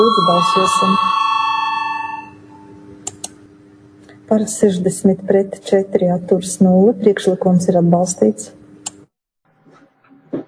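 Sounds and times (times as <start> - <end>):
speech: 0.0 - 1.2, 4.3 - 8.6
electronic parliament voting bell in a parliamentary chamber: 0.0 - 2.7.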